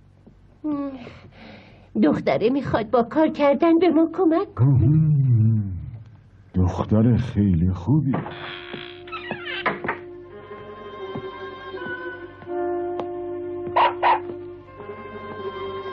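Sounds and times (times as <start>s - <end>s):
steady tonal hum: 0.0s - 15.9s
speech: 0.6s - 5.2s, 6.7s - 8.8s
dog Pako barking from hunger: 13.8s - 14.4s.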